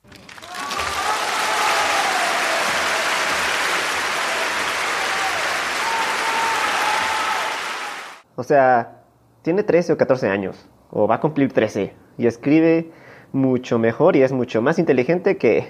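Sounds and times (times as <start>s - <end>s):
crowd applause: 0.0s - 8.2s
faint whistles and cheers: 0.4s - 8.2s
speech: 8.4s - 15.6s.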